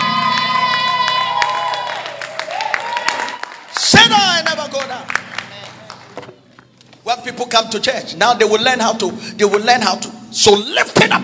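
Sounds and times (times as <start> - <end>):
audience shouting praise: 0.0 - 4.0
audience clapping: 0.0 - 7.0
speech: 7.3 - 11.2.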